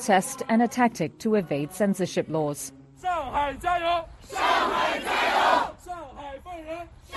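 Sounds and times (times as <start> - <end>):
speech: 0.0 - 5.7
protesters chanting in unison: 3.8 - 5.8.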